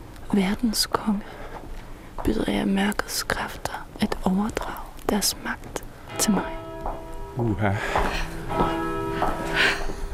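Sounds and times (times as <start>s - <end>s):
speech: 0.4s - 1.4s, 2.2s - 6.6s, 7.4s - 10.0s
church bell striking twelve: 6.1s - 10.1s.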